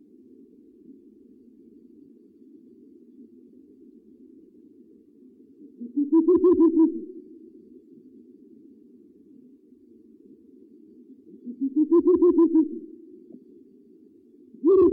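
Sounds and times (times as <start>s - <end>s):
owl hooting: 5.6s - 7.3s, 11.3s - 13.4s, 14.5s - 14.9s.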